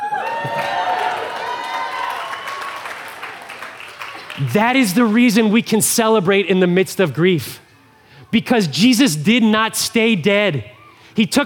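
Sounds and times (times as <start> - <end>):
audience cheering: 0.0 - 5.4
speech: 4.4 - 7.6, 8.3 - 11.4.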